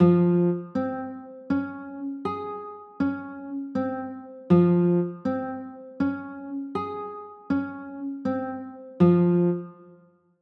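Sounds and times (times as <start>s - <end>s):
B flat minor chords: 0.0s - 10.0s.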